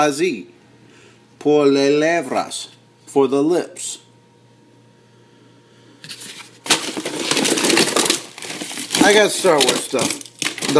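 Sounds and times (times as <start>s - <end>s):
speech: 0.0s - 0.6s, 1.4s - 4.0s, 9.0s - 10.7s
E.T. the Extraterrestrial plastic lunch tray being handled: 6.7s - 10.7s.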